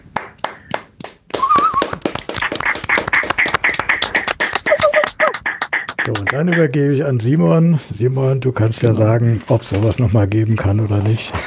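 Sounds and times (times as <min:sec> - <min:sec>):
audience applause: 0:01.3 - 0:06.4
speech: 0:06.1 - 0:11.4.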